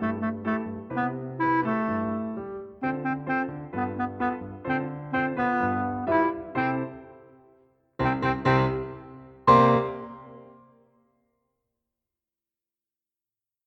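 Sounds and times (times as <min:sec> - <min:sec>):
cha cha music: 0:00.0 - 0:07.2, 0:08.0 - 0:10.7.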